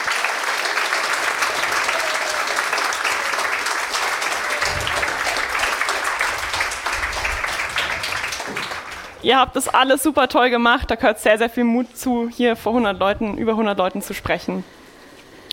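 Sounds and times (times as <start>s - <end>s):
audience applause: 0.0s - 9.2s
speech: 9.2s - 14.8s.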